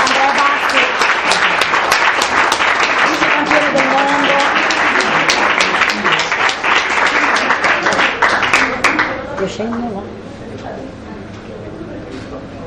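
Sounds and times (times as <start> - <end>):
crowd applause: 0.0 - 9.9.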